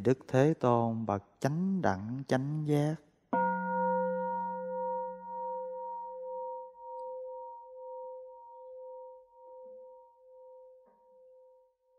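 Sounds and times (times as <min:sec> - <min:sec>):
speech: 0:00.0 - 0:03.1
temple bell struck: 0:03.4 - 0:06.3.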